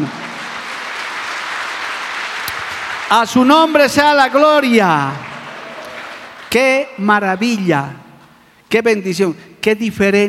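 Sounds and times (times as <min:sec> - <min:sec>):
speech: 0:00.0 - 0:00.2, 0:03.1 - 0:05.3, 0:06.5 - 0:08.0, 0:08.7 - 0:10.2
applause: 0:00.0 - 0:07.7.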